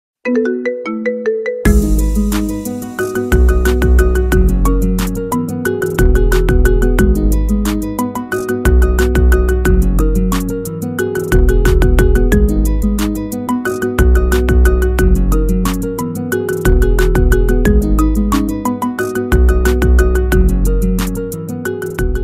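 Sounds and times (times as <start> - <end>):
marimba: 0.2 - 22.2.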